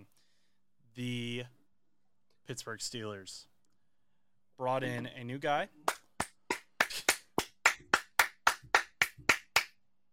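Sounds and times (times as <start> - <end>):
speech: 1.0 - 1.6, 2.5 - 3.5, 4.6 - 5.8
single person clapping hands: 5.8 - 9.8.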